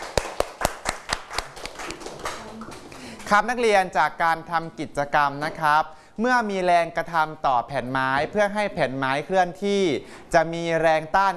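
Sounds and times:
classroom clapping for a student: 0.0 - 3.5
speech: 3.3 - 11.3.

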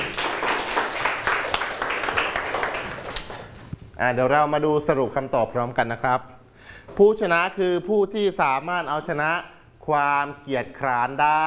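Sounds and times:
crowd applauding: 0.0 - 3.6
speech: 4.0 - 11.4.

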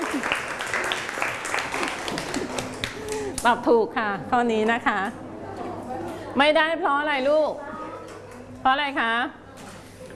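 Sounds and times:
applause for a group: 0.0 - 3.4
speech: 3.4 - 5.2, 6.4 - 7.6, 8.6 - 9.4.

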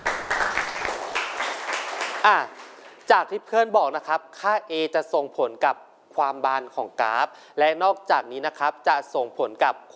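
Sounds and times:
students clapping: 0.0 - 3.0
speech: 2.2 - 9.9.

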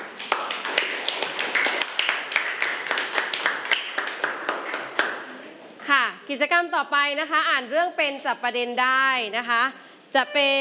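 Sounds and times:
students clapping: 0.0 - 5.3
speech: 6.3 - 10.5.

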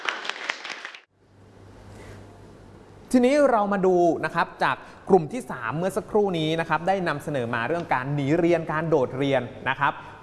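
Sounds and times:
classroom applause: 0.0 - 1.1
speech: 3.1 - 10.2.

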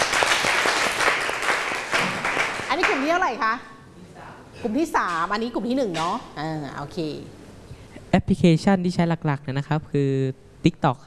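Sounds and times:
classroom group applause: 0.0 - 3.2
speech: 3.1 - 3.7, 4.6 - 7.4, 8.1 - 11.0.

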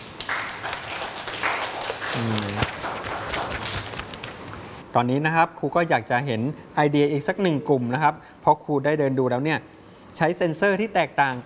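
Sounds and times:
classroom applause: 0.0 - 4.5
speech: 2.2 - 2.7, 5.0 - 11.4.

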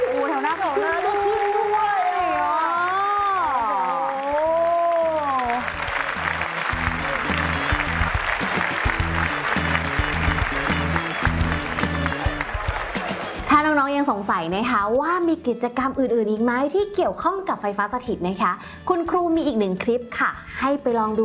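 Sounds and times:
audience cheering and clapping: 0.0 - 13.7
speech: 14.4 - 21.2.

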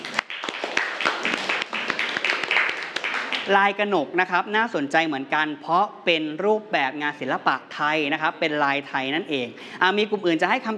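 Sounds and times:
classroom applause: 0.0 - 3.6
speech: 3.5 - 10.7.

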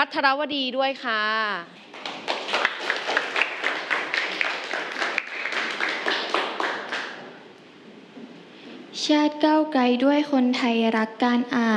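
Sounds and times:
speech: 0.0 - 2.0, 9.0 - 11.7
audience clapping: 1.9 - 7.4.

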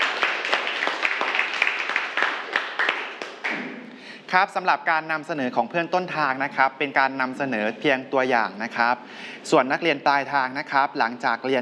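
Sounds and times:
students clapping: 0.0 - 3.9
speech: 4.3 - 11.5.

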